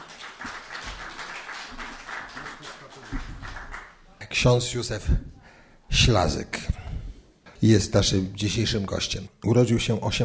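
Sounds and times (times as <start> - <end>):
small audience applause welcoming a guest: 0.0 - 4.1
speech: 4.4 - 6.7, 7.6 - 10.2.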